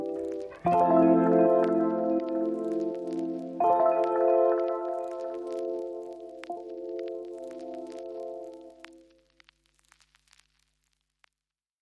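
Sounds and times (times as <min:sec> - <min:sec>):
chill instrumental beats: 0:00.0 - 0:09.0.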